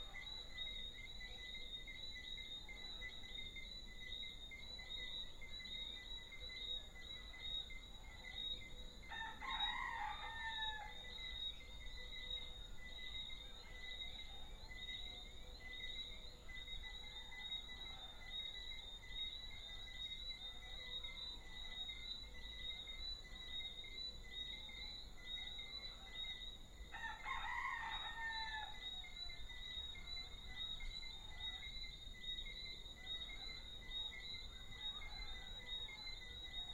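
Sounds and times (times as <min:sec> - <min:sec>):
small frogs chirping: 0:00.0 - 0:09.1, 0:10.9 - 0:26.9, 0:28.3 - 0:36.7
rooster crowing: 0:09.1 - 0:11.0, 0:26.9 - 0:28.8.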